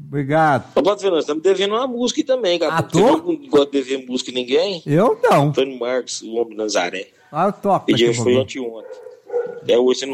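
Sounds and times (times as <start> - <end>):
speech: 0.1 - 10.1
dogs barking and yelping: 8.8 - 9.8.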